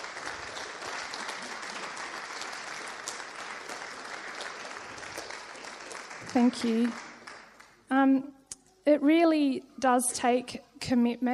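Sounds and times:
audience applause: 0.0 - 7.8
speech: 6.3 - 7.0, 7.9 - 11.3.

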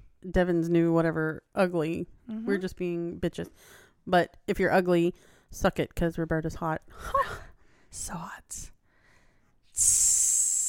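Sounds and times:
speech: 0.2 - 8.7, 9.8 - 10.3
voice imitating hissing steam: 9.8 - 10.6.

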